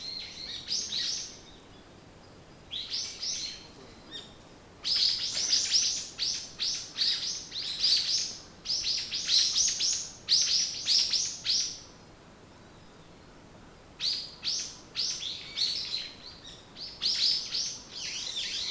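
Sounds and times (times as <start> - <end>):
bird song in bursts of high chirps and chattering: 0.0 - 11.8, 14.0 - 18.6.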